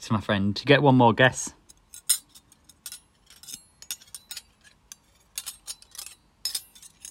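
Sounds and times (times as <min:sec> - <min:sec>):
speech: 0:00.0 - 0:01.6
two forks tapping and clinking: 0:02.9 - 0:04.5, 0:05.4 - 0:07.0.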